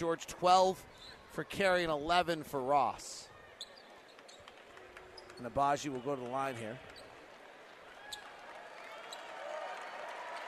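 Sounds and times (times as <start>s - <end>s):
speech: 0.0s - 3.3s, 5.4s - 7.0s
crowd applause: 7.3s - 10.4s.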